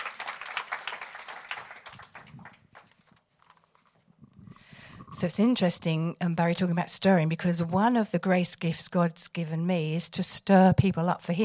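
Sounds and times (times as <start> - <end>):
audience applause: 0.0 - 3.1
speech: 5.1 - 11.4.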